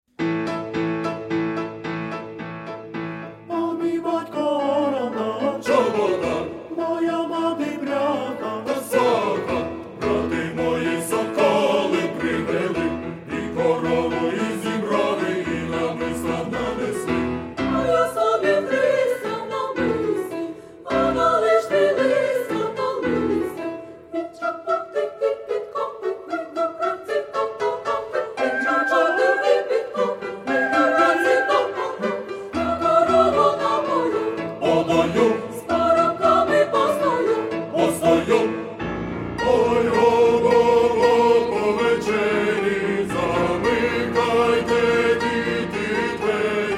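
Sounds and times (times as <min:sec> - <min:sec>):
instrumental music: 0:00.1 - 0:46.7.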